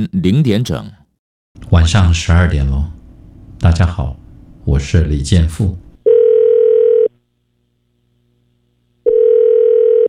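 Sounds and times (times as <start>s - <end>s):
speech: 0.0s - 1.0s, 1.7s - 3.0s, 3.6s - 5.8s
telephone ringback tone before voicemail: 6.1s - 7.1s, 9.0s - 10.0s.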